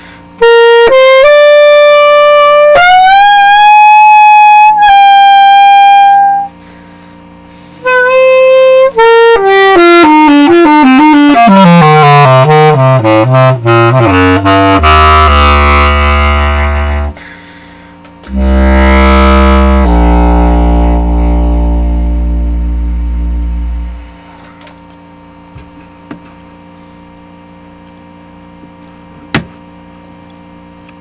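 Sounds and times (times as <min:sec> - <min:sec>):
bass test: 0:00.0 - 0:30.9
clarinet: 0:00.4 - 0:06.8, 0:07.8 - 0:17.4, 0:18.2 - 0:24.7.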